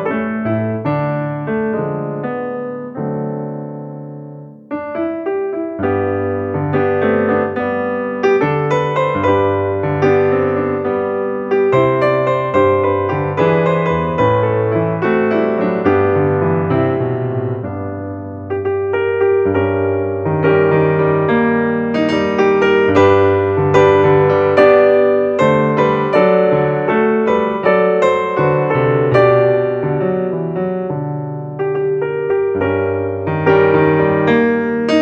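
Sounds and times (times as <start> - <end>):
solo piano piece: 0.0 - 34.9.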